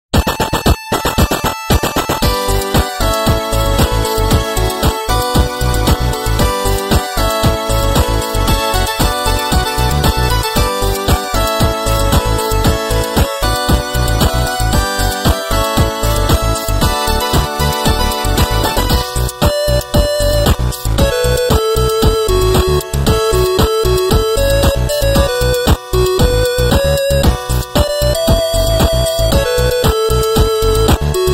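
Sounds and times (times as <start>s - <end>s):
8-bit mobile phone ringtone music: 0.2s - 31.3s.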